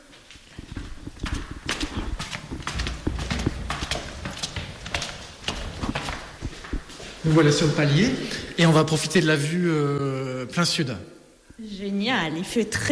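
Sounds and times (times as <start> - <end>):
footsteps climbing stairs of a house: 0.0 - 7.8
speech: 7.2 - 11.2, 11.8 - 12.9.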